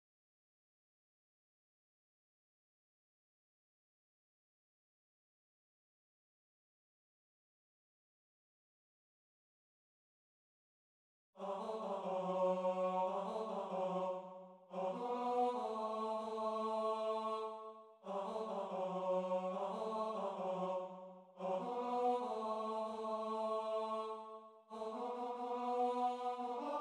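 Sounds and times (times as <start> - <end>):
tenor singing: 11.4 - 26.7.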